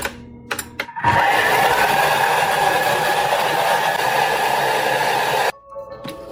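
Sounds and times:
Thermomix blender mixing batter at speed 8: 1.0s - 5.5s.

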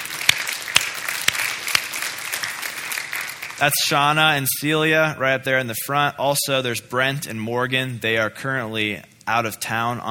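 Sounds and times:
audience clapping: 0.0s - 4.2s
speech: 3.6s - 10.0s.

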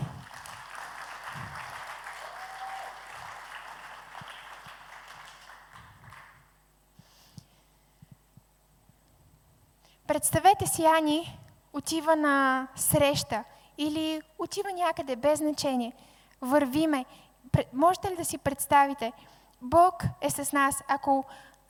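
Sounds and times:
audience applause: 0.0s - 6.5s
speech: 10.1s - 21.6s.

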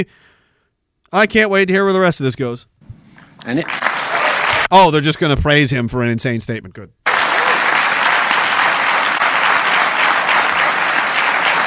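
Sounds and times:
speech: 0.0s - 0.3s, 1.1s - 2.7s, 3.4s - 3.9s, 4.7s - 7.0s
crowd applauding: 3.1s - 4.7s, 7.1s - 11.6s.

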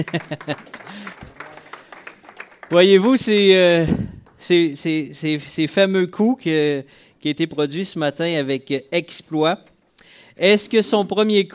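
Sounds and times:
speech: 0.0s - 0.8s, 2.7s - 9.7s, 10.4s - 11.5s
laughter: 0.0s - 1.6s
audience applause: 0.0s - 4.4s.

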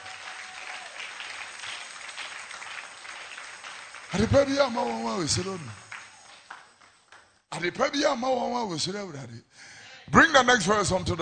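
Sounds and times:
audience clapping hands: 0.0s - 7.4s
speech: 4.1s - 5.8s, 7.6s - 11.2s.

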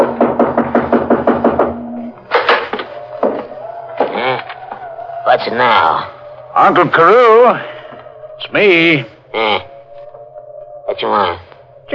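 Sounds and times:
knocking on a door: 0.0s - 2.0s
speech: 5.4s - 7.8s, 8.4s - 9.7s, 11.0s - 11.9s.

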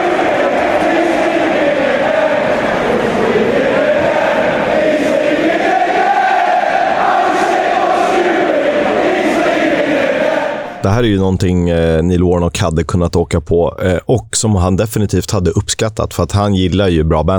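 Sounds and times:
football fans chanting a taunting terrace song: 0.0s - 10.8s
speech: 11.0s - 17.3s.

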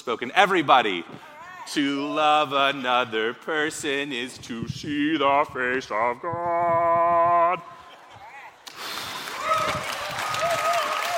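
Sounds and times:
speech: 0.0s - 7.8s
audience clapping: 8.6s - 11.1s
voices whooping: 9.3s - 11.1s.

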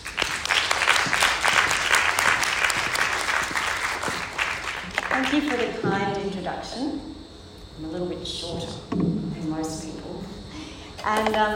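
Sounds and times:
audience applause welcoming a lecturer at the Fenner Lecture: 0.0s - 5.8s
speech: 5.2s - 7.2s, 7.8s - 10.2s, 11.0s - 11.5s.

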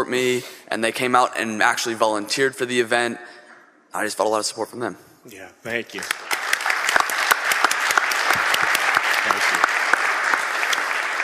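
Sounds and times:
speech: 0.0s - 6.3s
audience applause: 5.9s - 11.2s.

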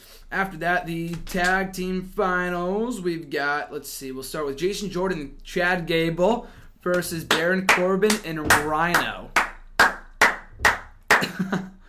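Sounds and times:
speech: 0.3s - 9.4s, 11.4s - 11.7s
crowd clapping: 7.3s - 11.4s.

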